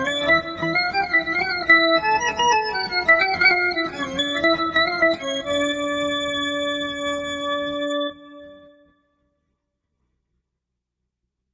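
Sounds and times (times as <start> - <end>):
fiddle playing a mazurka: 0.0 - 8.6.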